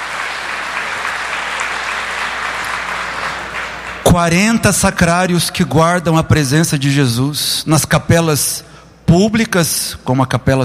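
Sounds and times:
audience applause: 0.0s - 4.1s
speech: 4.2s - 10.6s.

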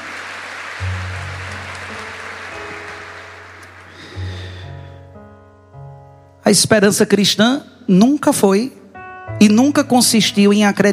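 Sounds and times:
audience applauding: 0.0s - 4.5s
speech: 6.5s - 8.8s, 9.4s - 10.9s.

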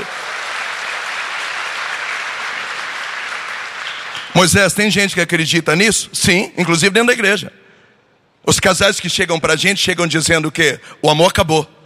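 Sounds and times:
audience applause: 0.0s - 4.4s
speech: 4.4s - 7.6s, 8.5s - 11.8s.

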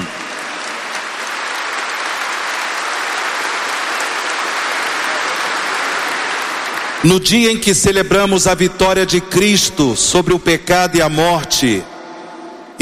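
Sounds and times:
audience applause: 0.0s - 7.7s
speech: 7.0s - 11.9s.

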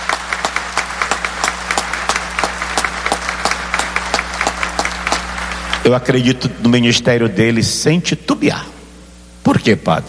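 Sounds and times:
audience applauding: 0.0s - 6.2s
low hum: 0.0s - 10.0s
speech: 5.8s - 8.7s, 9.5s - 10.0s.

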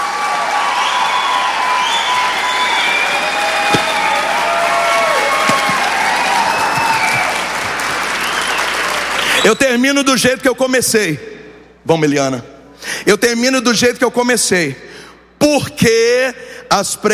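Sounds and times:
crowd applauding: 0.0s - 9.7s
speech: 9.4s - 11.3s, 11.9s - 17.1s.

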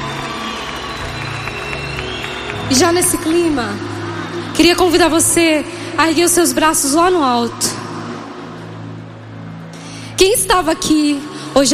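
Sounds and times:
audience applause: 0.0s - 4.5s
speech: 2.7s - 3.9s, 4.5s - 7.8s, 10.2s - 11.7s.

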